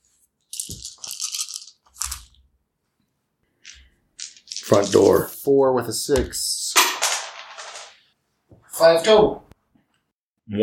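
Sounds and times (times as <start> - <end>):
dice rolling on a hard surface: 0.5 - 2.4, 3.6 - 5.4, 6.8 - 8.0
speech: 4.7 - 6.6, 8.8 - 9.4, 10.5 - 10.6.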